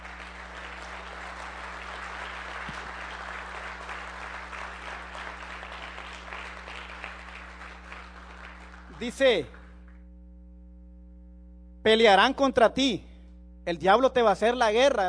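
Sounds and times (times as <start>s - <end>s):
audience applauding: 0.0s - 9.8s
low constant hum: 0.0s - 15.0s
speech: 9.0s - 9.6s, 11.9s - 15.0s.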